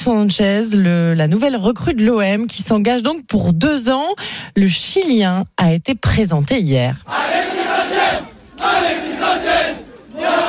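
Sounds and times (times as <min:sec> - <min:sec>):
speech: 0:00.0 - 0:07.6
football fans chanting and cheering: 0:07.0 - 0:10.4.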